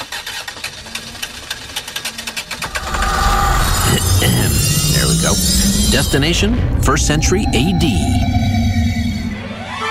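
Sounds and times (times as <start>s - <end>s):
time machine warming up sound effect: 2.4s - 9.8s
speech: 5.9s - 8.5s.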